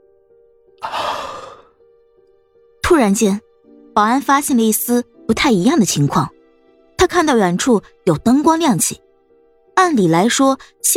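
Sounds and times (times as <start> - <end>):
person yawning: 0.8 - 1.7
speech: 3.0 - 6.4, 7.0 - 9.0, 9.8 - 10.9.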